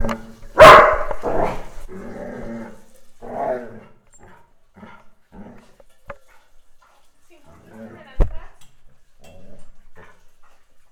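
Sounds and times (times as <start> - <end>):
dogs barking in a pet fight: 0.5 - 1.8.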